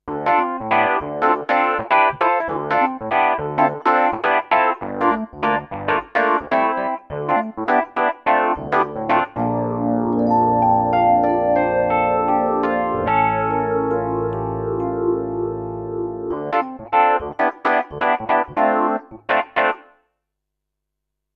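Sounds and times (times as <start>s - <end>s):
electric piano with phaser: 0.1s - 19.8s.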